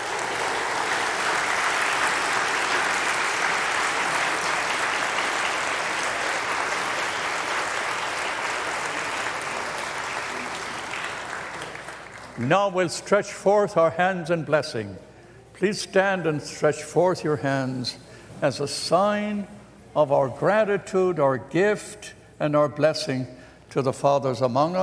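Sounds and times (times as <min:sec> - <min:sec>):
audience applauding: 0:00.0 - 0:12.4
speech: 0:12.4 - 0:24.8.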